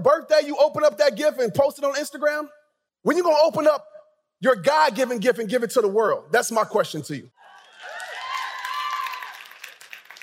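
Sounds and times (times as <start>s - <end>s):
speech: 0.0s - 7.4s
audience clapping: 7.5s - 10.2s.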